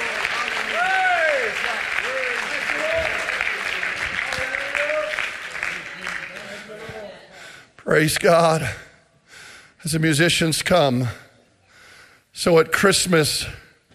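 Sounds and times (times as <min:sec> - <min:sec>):
audience clapping hands: 0:00.0 - 0:07.1
scattered cheers and voices: 0:00.0 - 0:07.2
speech: 0:08.0 - 0:08.8, 0:09.8 - 0:11.2, 0:12.4 - 0:13.6.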